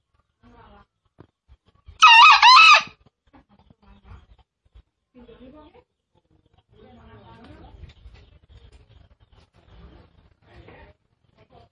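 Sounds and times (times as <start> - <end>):
green junglefowl crowing: 2.0 - 2.9.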